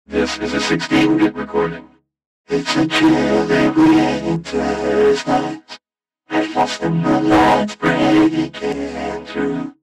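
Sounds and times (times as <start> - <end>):
vocoder voice: 0.1 - 1.8, 2.5 - 5.6, 6.3 - 9.8.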